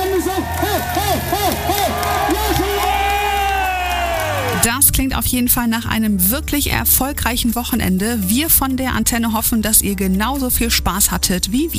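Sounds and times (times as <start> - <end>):
festival crowd cheering and whooping: 0.0 - 4.6
speech: 4.6 - 11.7.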